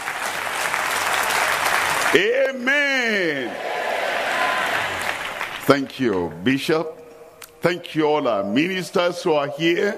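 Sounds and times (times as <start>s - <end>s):
audience clapping: 0.0s - 6.3s
speech: 2.1s - 3.6s, 5.7s - 7.0s, 7.6s - 9.9s.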